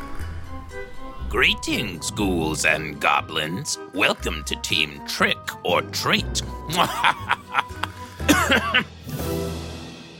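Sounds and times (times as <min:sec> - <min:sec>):
speech: 0:01.3 - 0:07.4, 0:08.5 - 0:09.4
laughter: 0:06.7 - 0:08.9
person coughing to clear something stuck in the throat: 0:08.2 - 0:08.9.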